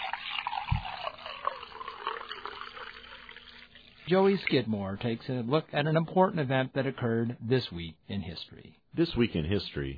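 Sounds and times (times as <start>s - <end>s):
coffee poured into a cup: 0.0s - 4.7s
speech: 4.1s - 9.9s.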